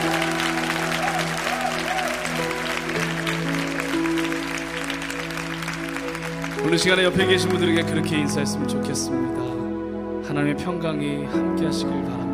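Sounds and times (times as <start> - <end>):
audience applause: 0.0 - 8.2
speech: 6.7 - 9.6, 10.3 - 12.3.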